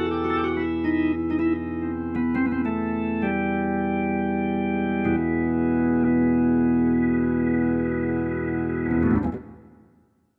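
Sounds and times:
electric organ factory patch on Roland SC-880: 0.0 - 9.8.

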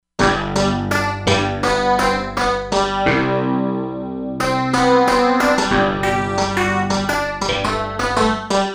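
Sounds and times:
Korg MSC-07S synth pulse: 0.2 - 8.6.

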